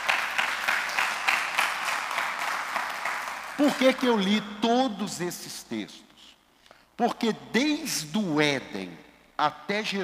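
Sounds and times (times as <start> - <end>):
audience applause: 0.0 - 4.0
speech: 3.6 - 6.1, 7.0 - 10.0.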